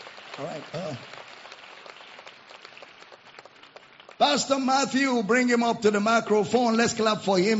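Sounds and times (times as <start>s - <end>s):
audience applause: 0.0s - 5.6s
speech: 0.4s - 1.3s, 4.2s - 7.5s.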